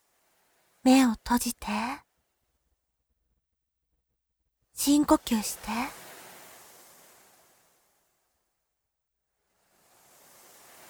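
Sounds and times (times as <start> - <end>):
speech: 0.8 - 2.0, 4.8 - 6.0
ocean waves washing in a slow swell: 4.8 - 7.9, 9.6 - 10.8.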